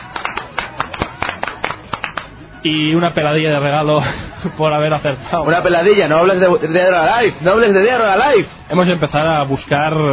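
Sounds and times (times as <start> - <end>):
applause sound effect on a radio show: 0.0 - 2.3
speech: 2.6 - 10.1.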